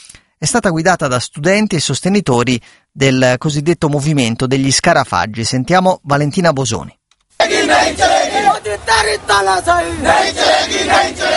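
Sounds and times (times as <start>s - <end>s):
speech: 0.4s - 11.3s
protest crowd chanting slogans: 7.4s - 11.3s.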